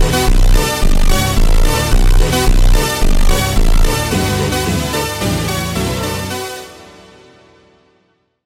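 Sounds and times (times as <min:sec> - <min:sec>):
automotivo super slowed funk: 0:00.0 - 0:06.7.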